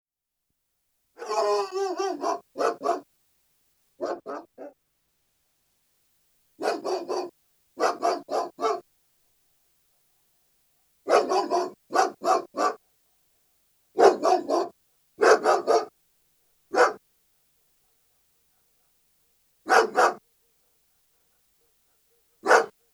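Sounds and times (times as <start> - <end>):
German Shepherd barking: 1.2 - 3.1, 4.0 - 4.8, 6.6 - 8.8, 11.1 - 12.8, 14.0 - 15.9, 16.7 - 17.0, 19.6 - 20.2, 22.4 - 22.9.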